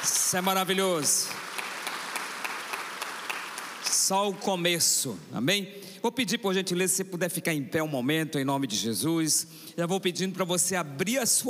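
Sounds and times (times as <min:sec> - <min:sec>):
audience applause: 0:00.0 - 0:04.4
speech: 0:00.3 - 0:01.5, 0:04.1 - 0:11.4.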